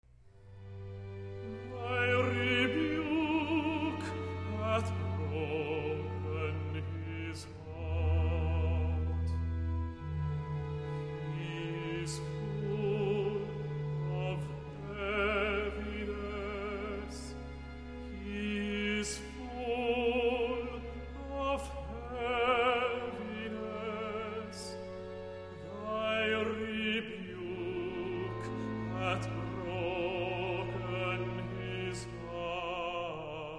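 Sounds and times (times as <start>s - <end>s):
tenor recitative: 1.4s - 33.5s.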